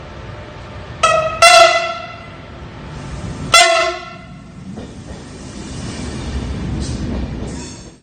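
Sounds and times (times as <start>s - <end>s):
typhon horn: 1.0s - 2.4s, 3.5s - 4.5s.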